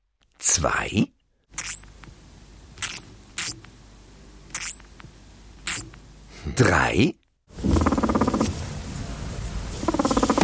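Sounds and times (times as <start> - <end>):
speech: 0.4 - 1.2, 6.6 - 7.2
unhappy guinea pig rumbling: 7.5 - 8.9, 9.7 - 10.4.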